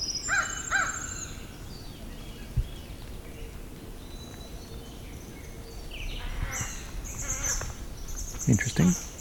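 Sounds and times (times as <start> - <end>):
crows cawing: 0.2 - 1.6, 6.1 - 8.2
speech: 8.8 - 9.1.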